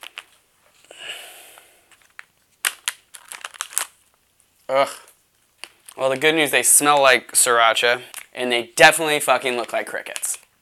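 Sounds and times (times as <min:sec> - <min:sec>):
crinkly snack bag being opened: 0:00.0 - 0:00.4, 0:01.6 - 0:06.4, 0:08.0 - 0:10.5
speech: 0:04.7 - 0:05.1, 0:06.0 - 0:10.4.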